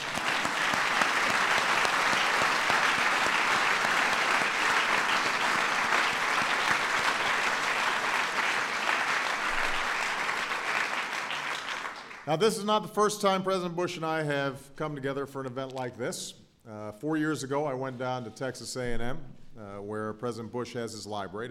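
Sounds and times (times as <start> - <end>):
applause from a large audience: 0.0 - 12.3
speech: 12.3 - 21.5.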